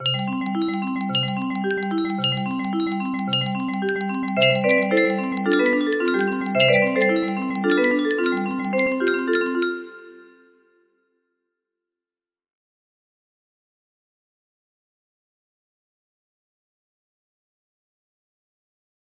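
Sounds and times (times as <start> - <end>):
music box melody: 0.0 - 10.7.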